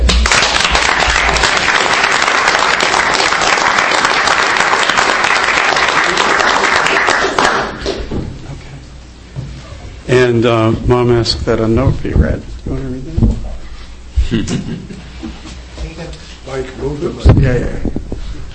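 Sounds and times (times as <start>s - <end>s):
audience applause: 0.1s - 8.1s
speech: 10.3s - 12.9s, 14.3s - 15.0s, 16.6s - 17.9s
laughter: 14.2s - 15.5s.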